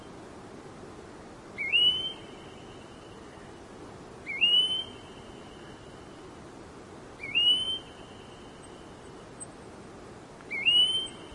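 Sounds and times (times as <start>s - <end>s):
faint steady hiss: 0.0s - 11.3s
red-browed goldfinch high thin whistles: 1.6s - 2.2s, 7.2s - 8.4s, 10.5s - 11.2s.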